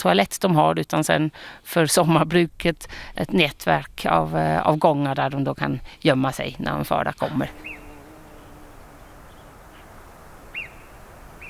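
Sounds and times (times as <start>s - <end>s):
speech: 0.0s - 7.8s
quiet outdoor hiss: 7.3s - 11.4s
marmot high-pitched alarm call: 7.5s - 11.4s.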